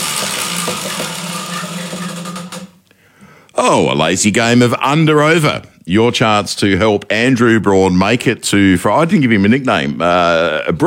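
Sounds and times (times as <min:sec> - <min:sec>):
game show prize wheel spinning and ticking: 0:00.0 - 0:02.8
mechanical hum: 0:00.0 - 0:03.0
speech: 0:00.7 - 0:01.6, 0:03.6 - 0:10.8.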